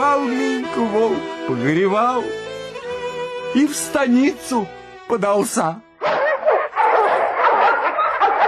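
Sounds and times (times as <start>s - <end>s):
speech: 0.1s - 2.5s, 3.6s - 5.9s
dogs barking in a Cossack village: 6.0s - 8.4s.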